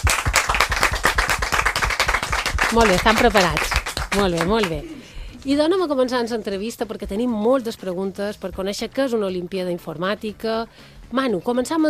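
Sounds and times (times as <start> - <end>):
audience clapping: 0.0 - 4.9
speech: 2.7 - 11.8.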